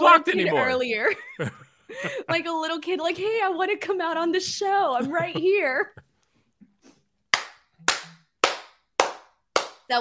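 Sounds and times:
speech: 0:00.2 - 0:06.0
hand clapping: 0:07.3 - 0:09.9.

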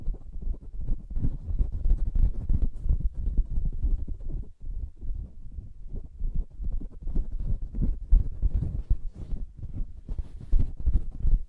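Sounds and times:
soft fabric tapped and scratched: 0:00.0 - 0:11.4.

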